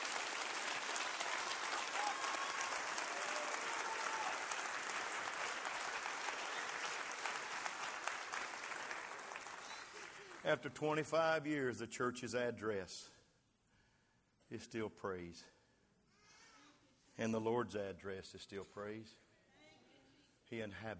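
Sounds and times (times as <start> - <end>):
audience clapping hands: 0.0 - 10.8
speech: 10.4 - 13.2, 14.5 - 15.6, 17.2 - 19.2, 20.5 - 20.9.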